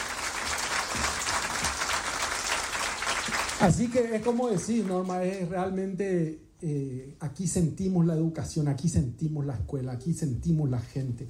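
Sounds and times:
audience applause: 0:00.0 - 0:05.2
speech: 0:03.6 - 0:11.2.

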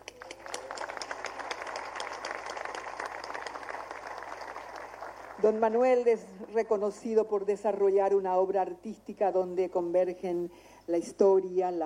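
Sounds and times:
audience applause: 0:00.0 - 0:05.8
speech: 0:05.4 - 0:11.8.

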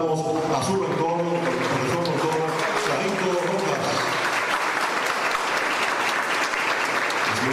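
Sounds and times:
audience applause at a national quality prize award ceremony: 0:00.1 - 0:07.5.

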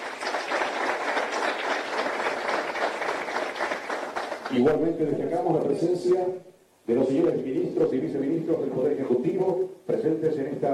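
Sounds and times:
audience applause: 0:00.0 - 0:04.6
speech: 0:04.5 - 0:10.7.

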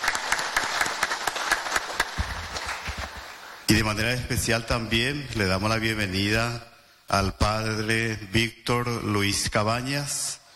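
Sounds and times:
audience applauding: 0:00.0 - 0:03.7
speech: 0:03.7 - 0:10.4.

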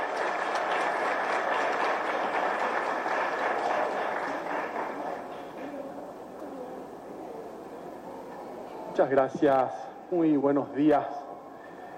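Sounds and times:
audience applause: 0:00.0 - 0:05.8
speech: 0:09.0 - 0:11.1.

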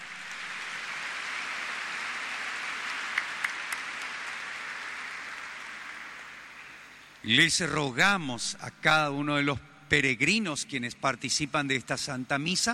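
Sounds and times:
audience applause: 0:00.0 - 0:06.9
speech: 0:07.2 - 0:12.7.

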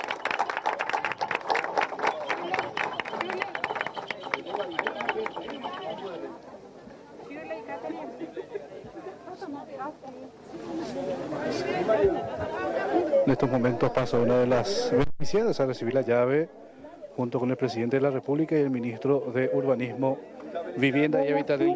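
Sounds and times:
crowd clapping: 0:00.0 - 0:06.3
murmur of overlapping voices and chatter: 0:00.0 - 0:21.7
speech: 0:13.4 - 0:21.7.

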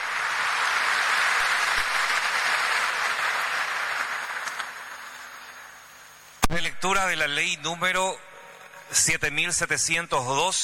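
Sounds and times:
audience applause: 0:00.0 - 0:06.2
speech: 0:06.5 - 0:08.3, 0:08.9 - 0:10.6.

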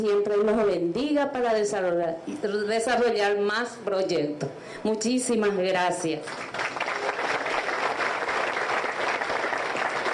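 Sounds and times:
speech: 0:00.0 - 0:06.8
audience applause: 0:06.3 - 0:10.1.

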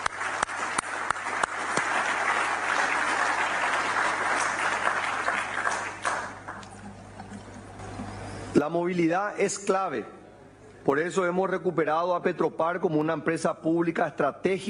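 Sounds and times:
audience applause: 0:00.0 - 0:07.5
speech: 0:08.6 - 0:10.2, 0:10.8 - 0:14.6.

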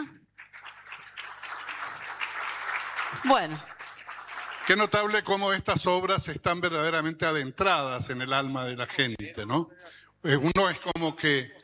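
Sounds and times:
audience applause: 0:00.4 - 0:05.2
speech: 0:03.1 - 0:03.7, 0:04.7 - 0:11.6.

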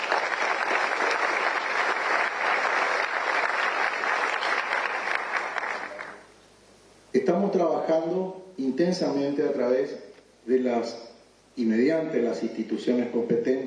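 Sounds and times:
audience applause: 0:00.0 - 0:06.3
speech: 0:07.2 - 0:11.0, 0:11.6 - 0:13.6.

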